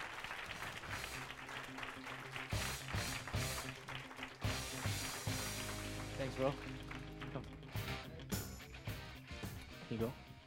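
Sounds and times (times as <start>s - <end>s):
audience applause: 0.0s - 8.2s
speech: 6.2s - 7.5s, 9.9s - 10.2s.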